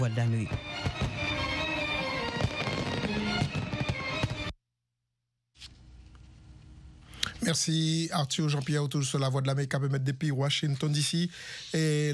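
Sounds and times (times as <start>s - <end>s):
speech: 0.0s - 1.1s, 7.5s - 12.1s
fireworks at a Fourth of July celebration in Washington: 0.5s - 4.6s.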